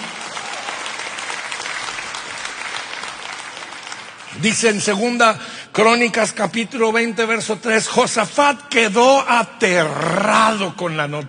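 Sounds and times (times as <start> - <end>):
audience applauding: 0.0 - 5.0
speech: 4.4 - 11.2.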